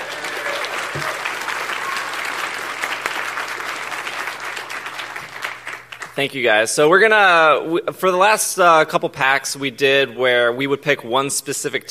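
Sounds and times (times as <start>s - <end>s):
audience applause: 0.0s - 6.2s
speech: 6.2s - 11.8s.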